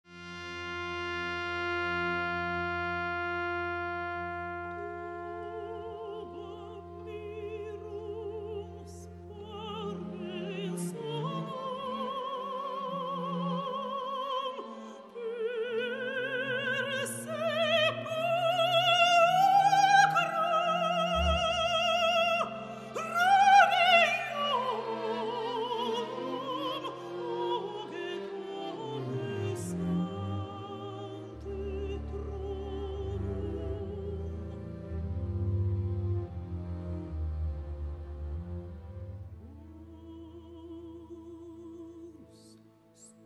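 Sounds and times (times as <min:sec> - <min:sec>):
requiem music: 0:00.1 - 0:43.2.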